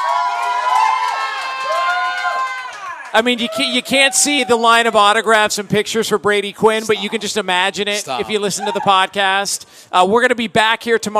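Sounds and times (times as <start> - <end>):
bar crowd cheering and shouting: 0.0 - 6.0, 6.6 - 9.2
speech: 3.1 - 11.1.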